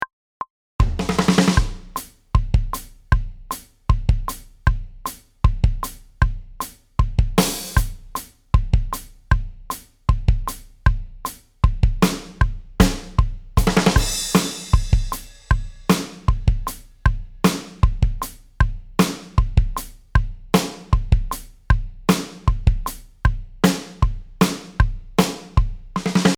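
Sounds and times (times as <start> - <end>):
drum: 0.8 - 26.3.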